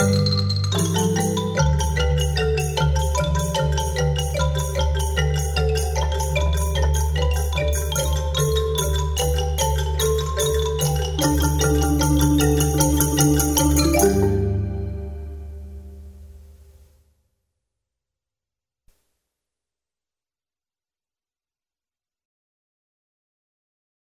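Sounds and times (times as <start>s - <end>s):
marimba piece in G: 0.0s - 16.4s.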